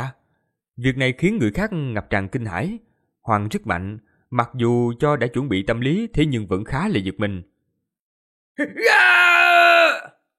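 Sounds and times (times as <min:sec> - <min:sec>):
speech: 0:00.8 - 0:07.5, 0:08.6 - 0:09.4
man screaming in pain: 0:08.6 - 0:10.2.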